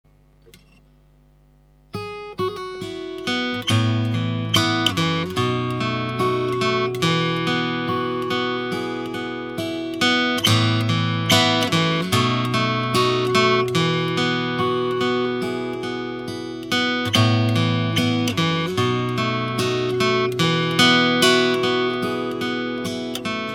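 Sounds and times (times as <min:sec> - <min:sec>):
Martin OOO guitar: 0:01.9 - 0:23.5.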